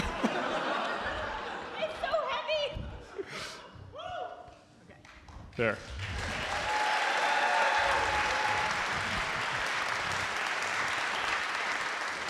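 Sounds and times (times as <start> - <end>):
laughter: 0.0 - 2.3
speech: 5.6 - 6.0
theater audience applauding: 5.9 - 12.2.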